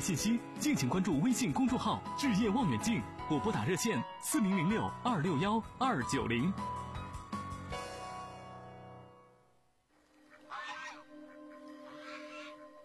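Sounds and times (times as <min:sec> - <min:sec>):
speech: 0:00.0 - 0:06.8
noise: 0:07.8 - 0:12.8
goose honking: 0:10.1 - 0:12.8.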